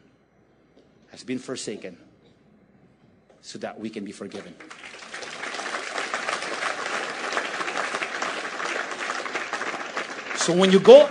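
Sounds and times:
speech: 1.1 - 2.1, 3.4 - 5.0, 10.4 - 11.1
audience applause: 4.4 - 11.1.

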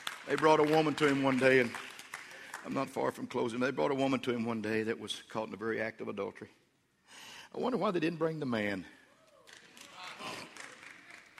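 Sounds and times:
women clapping in audience: 0.0 - 3.0, 9.4 - 11.3
speech: 0.2 - 1.9, 2.6 - 6.6, 7.5 - 9.0.

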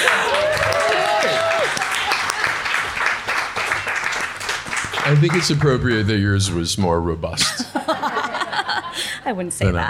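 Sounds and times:
audience applause in an Italian restaurant during a live show: 0.0 - 6.6
speech: 5.1 - 8.0, 9.2 - 9.8
laughter: 7.3 - 9.2.

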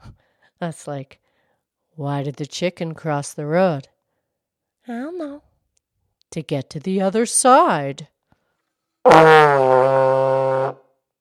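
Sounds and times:
speech: 0.6 - 1.2, 2.0 - 3.9, 4.8 - 5.5, 6.3 - 8.1, 9.0 - 9.9
trombone: 9.1 - 10.8.

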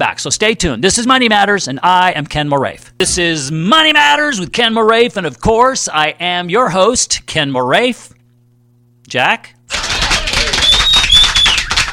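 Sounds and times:
speech: 0.0 - 8.2, 9.1 - 9.8
applause: 9.7 - 11.9
high-pitched whistles: 10.5 - 11.7.

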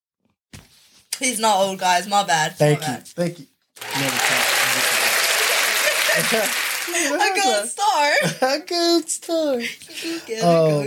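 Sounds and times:
speech: 1.2 - 4.8, 6.2 - 10.8
audience applause: 3.8 - 7.6
laughter: 3.8 - 8.6.

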